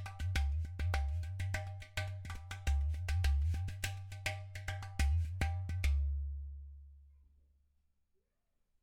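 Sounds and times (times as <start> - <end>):
udu drum: 0.0 - 7.0.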